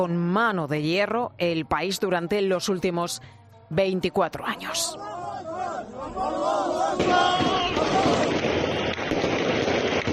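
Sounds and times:
speech: 0.0 - 5.4
celebrating crowd: 4.7 - 10.1
rebels' gunfire into the air: 7.0 - 10.1.

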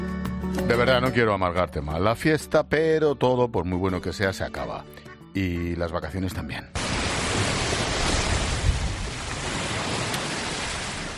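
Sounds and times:
speech: 0.7 - 7.5
ocean waves breaking on beach: 6.8 - 11.1.

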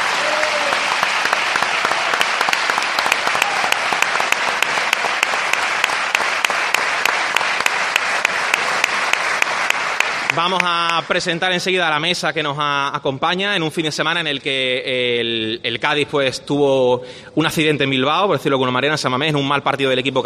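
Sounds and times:
audience applause: 0.0 - 11.5
speech: 10.4 - 20.2.

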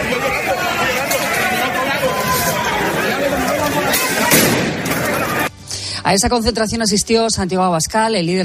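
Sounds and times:
crowd roaring and chattering: 0.0 - 5.7
sharp bangs of tear gas and rubber bullets being fired: 4.3 - 5.0
speech: 6.1 - 8.4.

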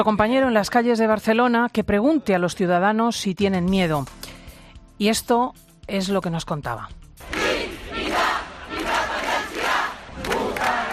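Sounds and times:
speech: 0.0 - 4.3, 5.0 - 7.3
street crowd shouting pro-independence chants: 7.2 - 10.9.

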